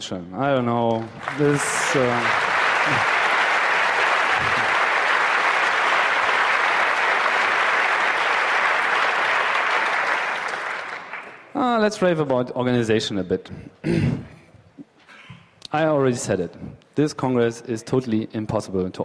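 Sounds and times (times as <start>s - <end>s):
speech: 0.0s - 3.2s, 11.6s - 14.9s, 15.7s - 19.0s
audience applause: 0.5s - 11.5s.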